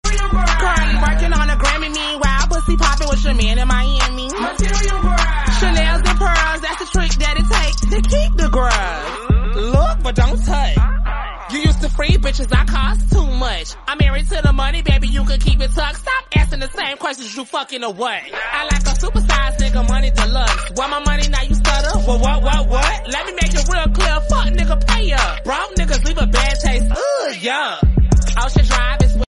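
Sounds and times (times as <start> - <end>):
English song remix: 0.0 - 29.2.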